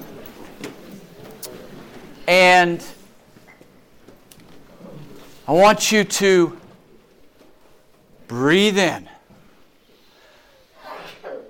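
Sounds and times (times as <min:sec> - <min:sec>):
speech: 0:02.3 - 0:03.0, 0:05.5 - 0:06.6, 0:08.3 - 0:09.1
sneeze: 0:10.7 - 0:11.4.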